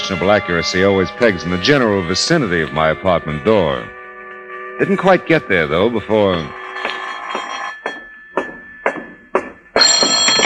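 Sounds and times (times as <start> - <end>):
speech: 0.1 - 4.0, 4.8 - 6.6
telephone ringing: 6.2 - 8.7, 9.8 - 10.4.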